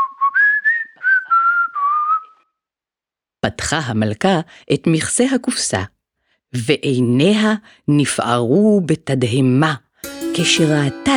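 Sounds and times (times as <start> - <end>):
person whistling a cheerful tune: 0.0 - 2.5
speech: 3.4 - 9.8, 10.4 - 11.1.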